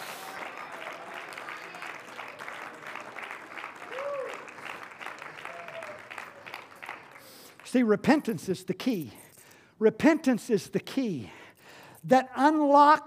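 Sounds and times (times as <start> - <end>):
audience clapping hands: 0.0 - 8.3
speech: 7.7 - 9.2, 9.8 - 11.4, 12.0 - 13.0.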